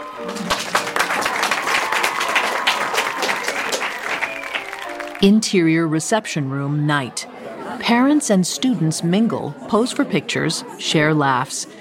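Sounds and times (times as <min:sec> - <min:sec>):
audience applause at a graduation ceremony: 0:00.0 - 0:05.2
speech: 0:05.2 - 0:11.8.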